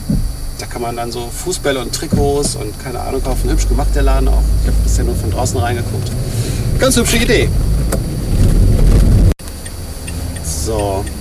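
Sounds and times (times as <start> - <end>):
speech: 0.8 - 8.0, 10.7 - 11.1
car driving over cobblestones: 1.5 - 9.6.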